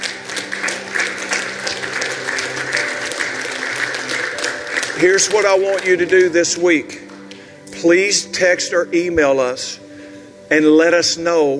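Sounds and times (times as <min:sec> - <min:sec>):
audience hand clapping: 0:00.0 - 0:07.8
speech: 0:05.0 - 0:07.0, 0:07.8 - 0:09.8, 0:10.5 - 0:11.5.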